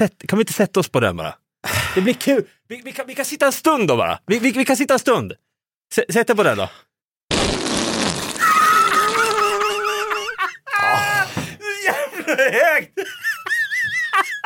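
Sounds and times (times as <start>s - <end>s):
speech: 0.0s - 1.4s, 2.0s - 6.9s, 12.3s - 13.2s
whoopee cushion fart noise: 7.3s - 9.4s
people giggling and laughing: 8.9s - 10.8s, 11.8s - 14.4s.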